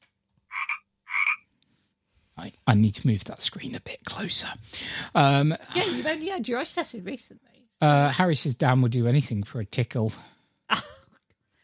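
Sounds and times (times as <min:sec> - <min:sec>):
frog croaking: 0:00.5 - 0:01.5
speech: 0:02.4 - 0:10.9.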